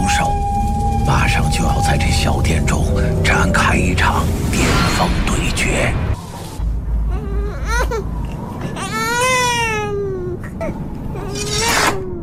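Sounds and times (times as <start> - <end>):
low rumble: 0.0 - 11.2
infant crying in a drama scene set in a small inn: 7.1 - 12.2.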